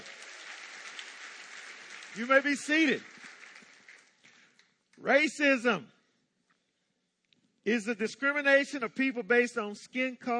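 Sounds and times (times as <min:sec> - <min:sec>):
audience applause: 0:00.0 - 0:04.6
speech: 0:02.2 - 0:03.1, 0:05.0 - 0:06.0, 0:07.6 - 0:10.3.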